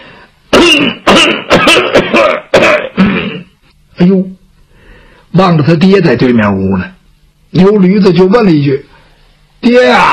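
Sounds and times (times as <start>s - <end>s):
man imitating an old father coughing: 0.5s - 3.6s
speech: 4.0s - 4.3s, 5.3s - 8.9s, 9.6s - 10.1s.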